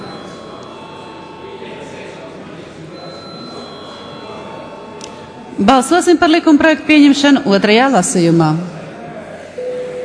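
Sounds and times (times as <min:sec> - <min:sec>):
parliament voting bell ringing: 0:00.0 - 0:06.6
speech: 0:05.6 - 0:08.8.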